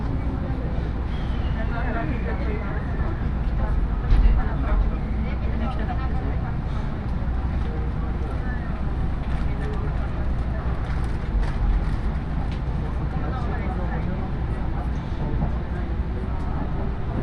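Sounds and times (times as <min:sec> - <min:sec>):
Iida Line train rumble: 0:00.0 - 0:17.2
faint voices murmuring: 0:00.0 - 0:17.2.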